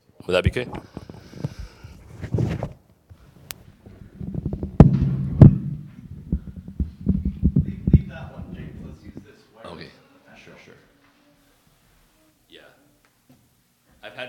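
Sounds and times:
mechanical heart valve booming: 3.8 - 9.2.

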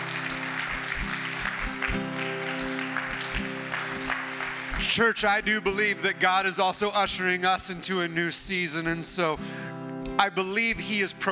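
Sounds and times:
audience applause: 0.0 - 5.2
speech: 4.8 - 9.6, 10.2 - 11.3.

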